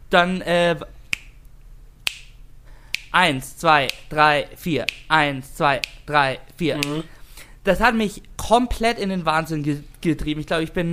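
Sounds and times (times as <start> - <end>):
faint low hum: 0.0 - 10.9
speech: 0.1 - 1.0, 3.1 - 10.9
finger snaps keeping tempo like a metronome click: 1.1 - 3.2, 3.9 - 4.1, 4.8 - 5.1.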